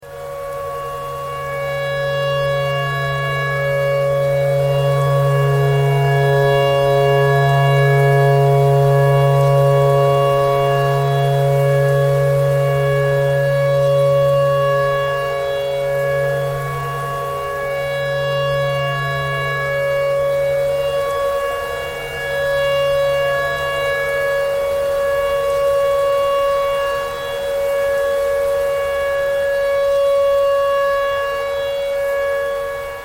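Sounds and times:
clarinet playing pentatonic tornado siren tune: 0:00.0 - 0:33.0.

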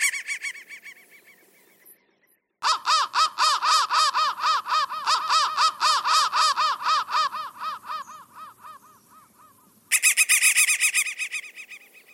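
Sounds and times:
crow cawing: 0:02.6 - 0:11.8.

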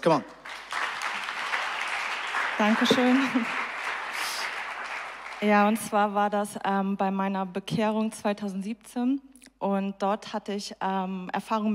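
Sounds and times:
speech: 0:00.0 - 0:00.7, 0:02.6 - 0:03.6, 0:05.4 - 0:11.7
crowd applause: 0:00.4 - 0:05.8.

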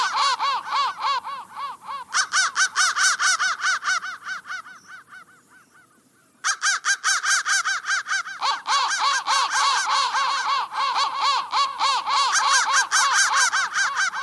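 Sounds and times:
crow cawing: 0:00.0 - 0:14.2.

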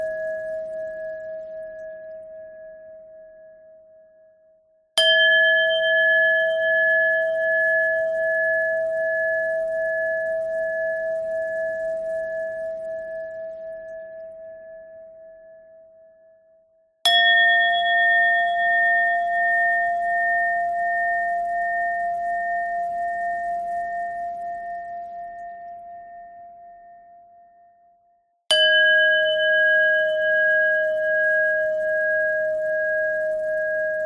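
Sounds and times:
long bell bend threads: 0:05.0 - 0:13.0, 0:17.1 - 0:24.9, 0:28.5 - 0:34.0.

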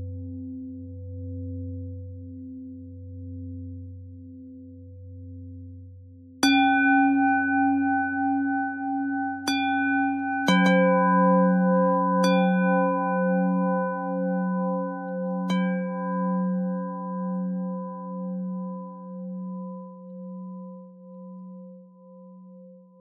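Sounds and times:
bells: 0:06.4 - 0:19.6.

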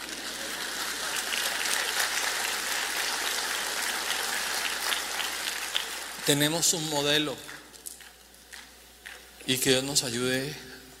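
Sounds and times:
audience applause: 0:00.0 - 0:06.8
speech: 0:06.3 - 0:07.6, 0:09.5 - 0:10.7.

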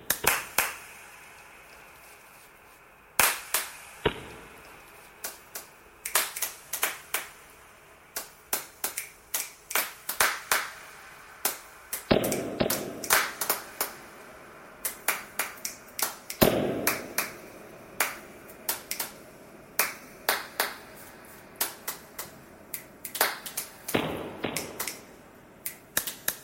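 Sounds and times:
clapping thread noise: 0:00.1 - 0:01.0, 0:03.2 - 0:04.2, 0:05.2 - 0:07.4, 0:08.1 - 0:14.0, 0:14.8 - 0:19.2, 0:19.8 - 0:26.4.

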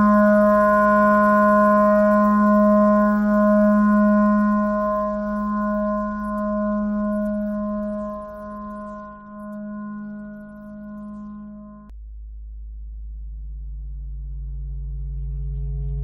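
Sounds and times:
simple clarinet playing: 0:00.0 - 0:11.9.

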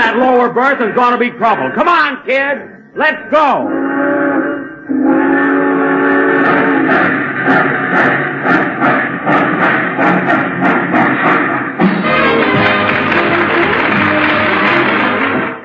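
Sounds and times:
speech: 0:00.2 - 0:04.1
train departing: 0:04.5 - 0:15.6.

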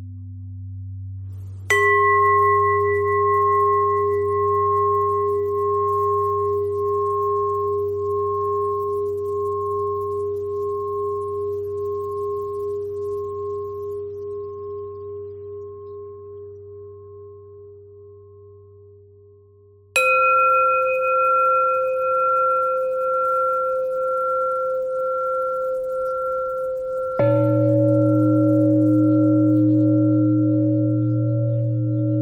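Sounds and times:
bells: 0:01.4 - 0:19.0, 0:20.0 - 0:32.2.

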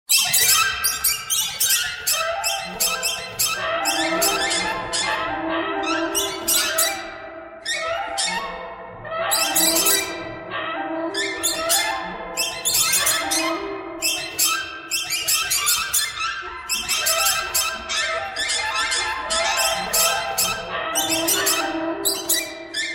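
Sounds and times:
birds: 0:00.1 - 0:22.9.

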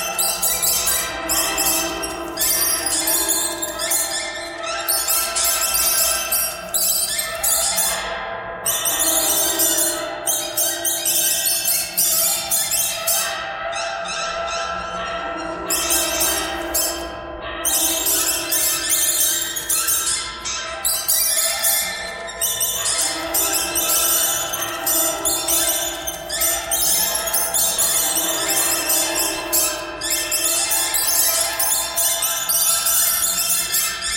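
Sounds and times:
birds: 0:00.0 - 0:34.1.

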